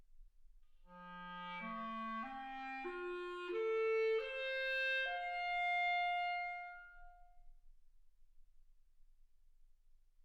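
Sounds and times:
clarinet: 0.9s - 7.4s.

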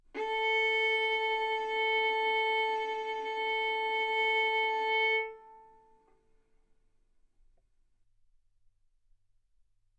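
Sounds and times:
violin bowed arco notes: 0.0s - 6.2s.

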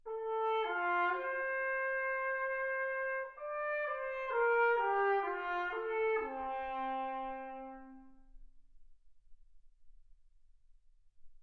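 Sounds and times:
trumpet: 0.0s - 8.6s.

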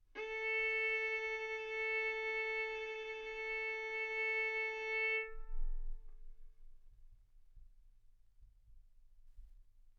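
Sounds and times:
violin bowed arco notes: 0.2s - 5.6s.

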